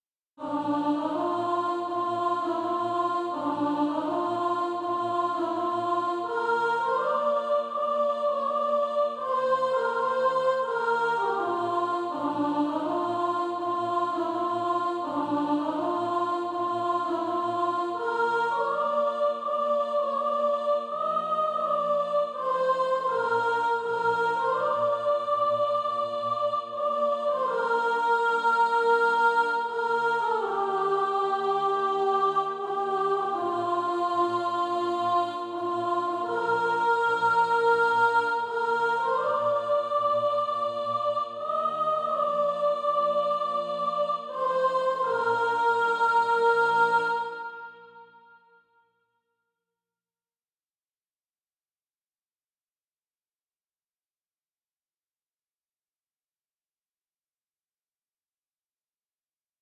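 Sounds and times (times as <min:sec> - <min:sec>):
soprano singing practice music: 0:00.4 - 0:48.0.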